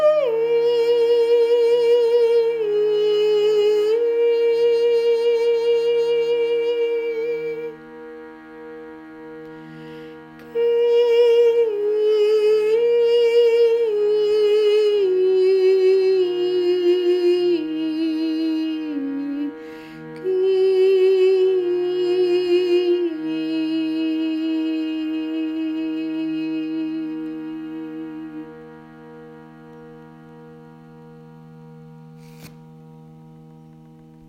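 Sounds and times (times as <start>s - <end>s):
person chanting: 0.0s - 7.8s, 10.4s - 28.6s
shruti box drone: 0.0s - 34.2s.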